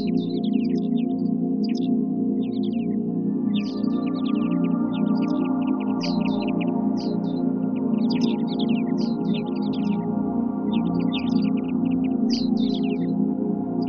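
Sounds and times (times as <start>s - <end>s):
forest sounds: 0.0s - 13.8s
light meditation music: 0.0s - 13.8s.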